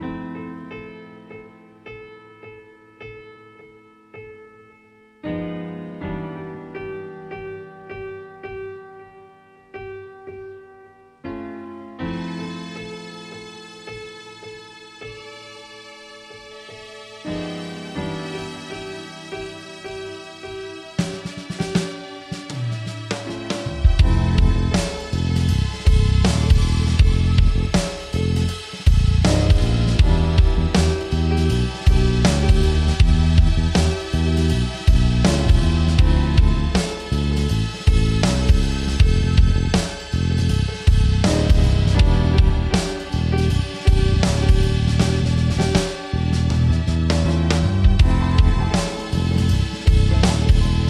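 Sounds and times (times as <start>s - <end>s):
jazz music: 11.3s - 50.8s.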